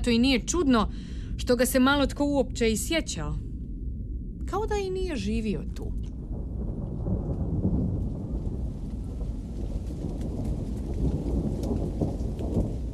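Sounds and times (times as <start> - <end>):
speech: 0.0 - 3.5, 4.5 - 6.1
heavy rumble of thunder: 0.0 - 12.9
rain: 4.7 - 12.9.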